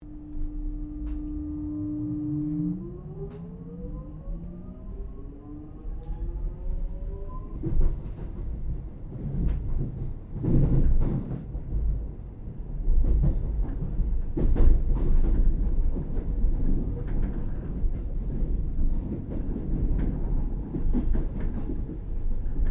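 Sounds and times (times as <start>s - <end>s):
Melbourne X'Trapolis 100 passenger train interior during a long stop: 0.0s - 22.6s.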